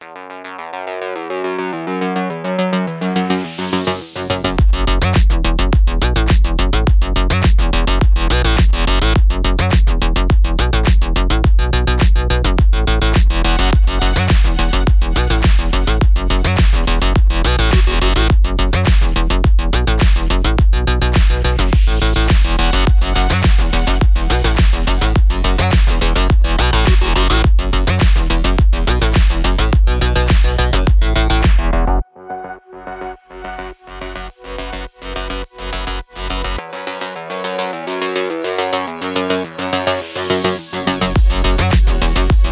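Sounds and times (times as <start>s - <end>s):
dynamic sport electro music: 1.4s - 32.0s, 34.1s - 42.4s.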